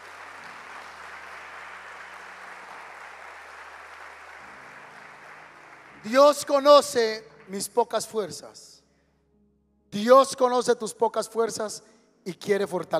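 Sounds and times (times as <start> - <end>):
audience applauding: 0.0 - 8.0
speech: 6.0 - 8.7, 9.9 - 12.9.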